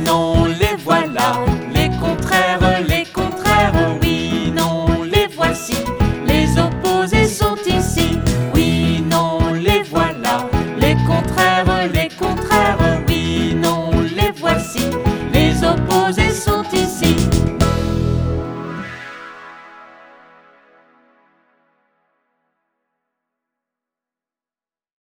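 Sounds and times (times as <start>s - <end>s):
French children's song: 0.0s - 18.2s.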